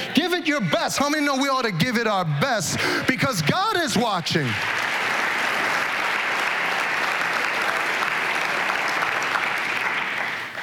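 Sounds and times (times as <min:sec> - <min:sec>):
speech: 0:00.2 - 0:04.9
audience applause: 0:03.2 - 0:10.6.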